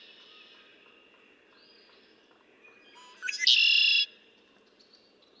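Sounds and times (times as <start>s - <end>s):
other birds chirping and whistling: 3.0s - 4.1s
red-winged blackbird calls: 3.0s - 4.1s.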